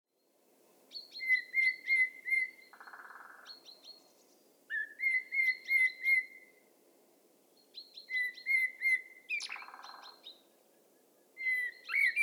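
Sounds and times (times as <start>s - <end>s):
Turdus merula common blackbird singing: 0.9s - 6.5s, 7.7s - 10.4s, 11.4s - 12.2s.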